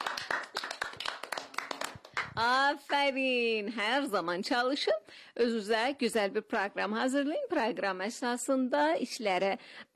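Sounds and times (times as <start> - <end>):
audience clapping for themselves: 0.0 - 3.0
speech: 2.4 - 9.9.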